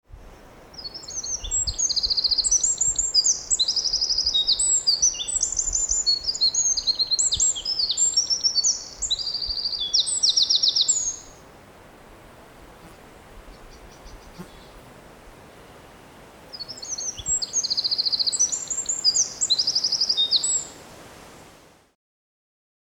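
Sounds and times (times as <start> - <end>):
Eurasian wren song: 0.7 - 11.4, 12.8 - 14.8, 16.5 - 20.8.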